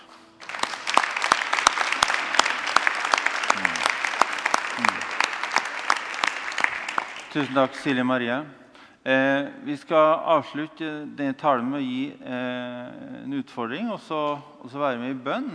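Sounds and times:
audience clapping: 0:00.0 - 0:07.9
speech: 0:07.4 - 0:15.5.

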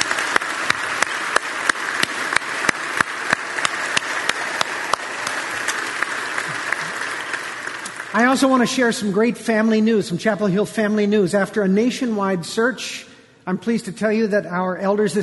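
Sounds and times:
audience applauding: 0:00.0 - 0:09.0
speech: 0:08.2 - 0:15.2.

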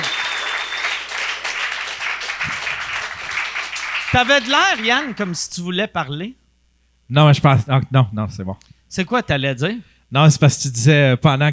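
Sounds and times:
crowd applauding: 0:00.0 - 0:05.5
speech: 0:04.1 - 0:06.4, 0:07.1 - 0:11.5.

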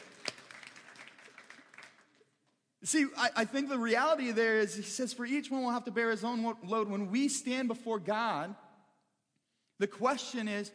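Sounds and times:
church congregation applause: 0:00.0 - 0:02.4
speech: 0:02.8 - 0:08.6, 0:09.8 - 0:10.7.

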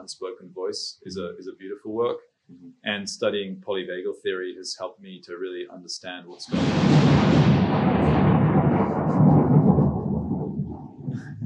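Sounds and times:
speech: 0:00.0 - 0:08.2
heavy downpour: 0:06.5 - 0:10.7
rolling thunder: 0:06.5 - 0:11.4.

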